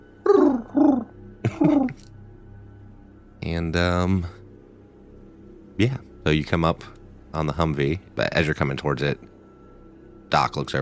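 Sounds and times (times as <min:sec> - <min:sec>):
person imitating common wood pigeon call: 0:00.2 - 0:02.0
speech: 0:03.6 - 0:04.4, 0:05.8 - 0:09.3, 0:10.3 - 0:10.8.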